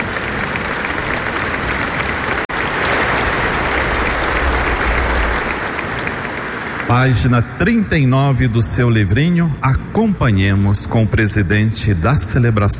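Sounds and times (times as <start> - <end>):
audience applause: 0.0 - 7.8
speech: 6.9 - 12.7.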